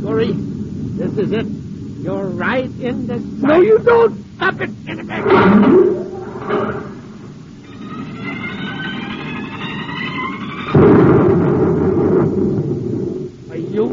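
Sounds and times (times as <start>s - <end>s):
volcano erupting: 0.0s - 13.9s
speech: 0.1s - 6.8s
blast: 5.0s - 13.5s.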